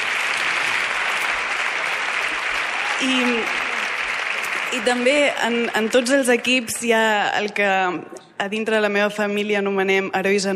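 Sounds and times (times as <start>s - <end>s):
audience applause: 0.0s - 6.5s
speech: 3.0s - 3.6s, 4.7s - 10.5s.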